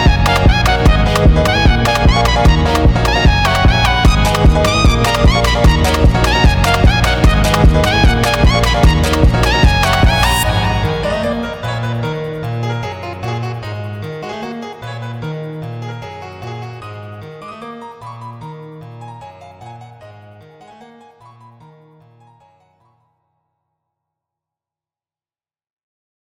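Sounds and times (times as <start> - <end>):
sped-up type beat: 0.0 - 15.9.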